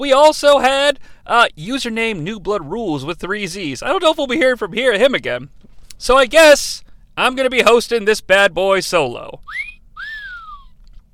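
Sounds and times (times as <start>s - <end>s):
speech: 0.0s - 9.7s
cell phone ringtone of whistling: 9.5s - 10.7s.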